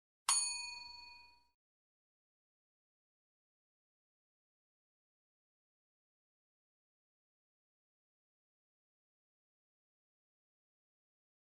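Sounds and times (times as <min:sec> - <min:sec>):
timer: 0:00.3 - 0:01.5.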